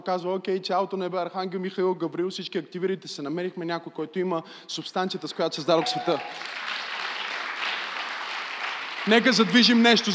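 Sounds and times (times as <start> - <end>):
speech: 0.0 - 6.8, 9.0 - 10.1
audience applause: 5.6 - 10.1.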